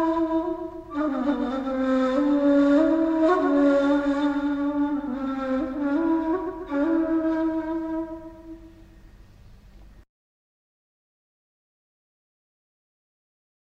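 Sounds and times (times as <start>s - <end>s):
ney flute taksim improvisation: 0.0s - 9.0s.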